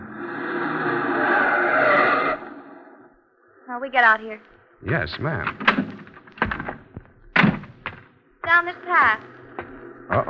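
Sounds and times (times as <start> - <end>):
car tires squealing through a sharp turn into a driveway: 0.0 - 2.6
speech: 3.8 - 5.8, 8.5 - 9.4, 10.1 - 10.2.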